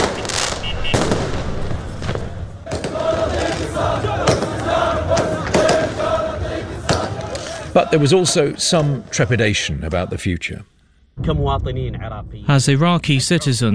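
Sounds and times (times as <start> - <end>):
fireworks and firecrackers banging at night in Baghdad: 0.0 - 6.0
crowd shouting at street celebrations in Baghdad: 2.6 - 9.4
speech: 7.8 - 13.7.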